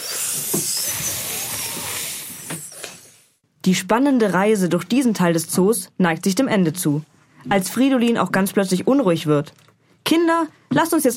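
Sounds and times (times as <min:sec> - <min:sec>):
snake hissing: 0:00.0 - 0:03.3
speech: 0:03.7 - 0:11.1.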